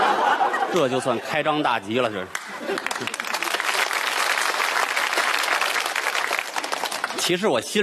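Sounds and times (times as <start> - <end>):
laughter: 0.0 - 1.6, 2.3 - 3.8
speech: 0.7 - 3.2, 7.2 - 7.8
audience applause: 2.3 - 7.5.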